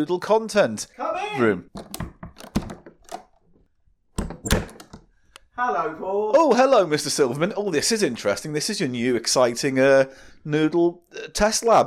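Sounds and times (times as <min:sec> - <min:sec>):
speech: 0:00.0 - 0:02.0, 0:05.6 - 0:11.8
door being opened: 0:01.8 - 0:03.6, 0:04.2 - 0:05.0.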